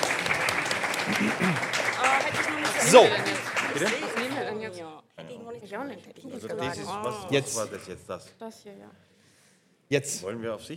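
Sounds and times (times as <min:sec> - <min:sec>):
crowd applause: 0:00.0 - 0:04.7
speech: 0:01.1 - 0:09.1, 0:09.9 - 0:10.7.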